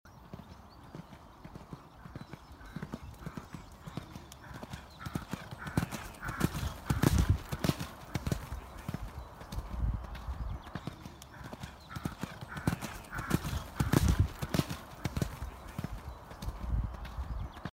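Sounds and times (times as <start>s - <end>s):
horse: 0.1s - 17.7s.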